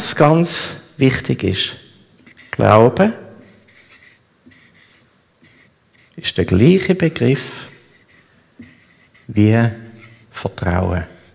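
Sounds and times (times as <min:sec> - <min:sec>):
speech: 0:00.2 - 0:01.8, 0:02.6 - 0:03.2, 0:06.2 - 0:07.7, 0:09.3 - 0:09.8, 0:10.4 - 0:11.1
something being written down: 0:02.2 - 0:02.8, 0:03.4 - 0:11.3.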